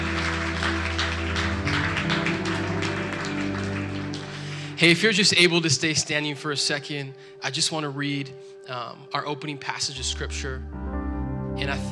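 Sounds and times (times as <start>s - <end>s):
audience clapping: 0.0s - 5.4s
sustained musical tones: 0.0s - 11.9s
speech: 4.8s - 10.8s, 11.6s - 11.9s.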